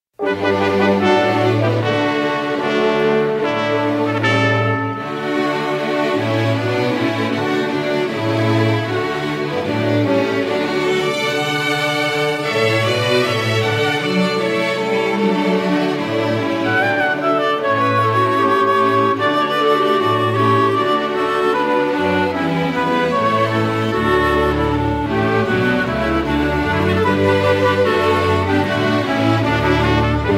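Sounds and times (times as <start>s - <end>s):
instrumental Christmas music: 0.2s - 30.3s.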